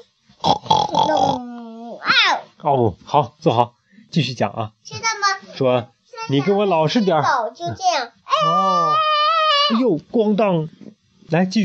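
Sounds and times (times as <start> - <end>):
person voicing a pig grunting: 0.4 - 1.9, 8.4 - 9.8
speech: 2.3 - 5.0, 5.6 - 9.1, 9.7 - 11.6.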